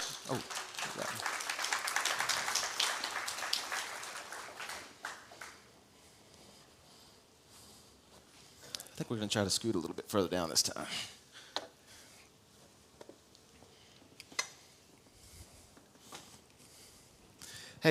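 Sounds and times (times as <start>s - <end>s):
audience applause: 0.0s - 5.7s
speech: 0.3s - 1.1s, 9.0s - 11.2s.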